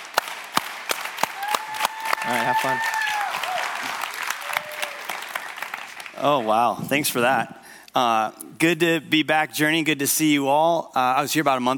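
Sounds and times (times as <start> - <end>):
audience slow clap welcoming a guest speaker: 0.0 - 6.7
speech: 2.2 - 3.0, 6.2 - 11.7.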